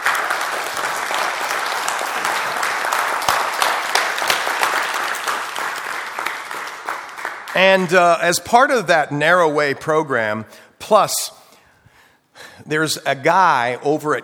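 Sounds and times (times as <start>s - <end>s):
audience clapping: 0.0s - 8.1s
speech: 7.6s - 11.4s, 12.7s - 14.2s.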